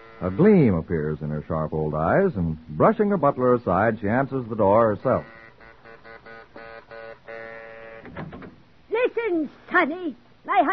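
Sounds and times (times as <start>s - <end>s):
speech: 0.2s - 5.4s, 9.2s - 10.7s
buzzing doorbell pressed repeatedly: 5.1s - 8.1s.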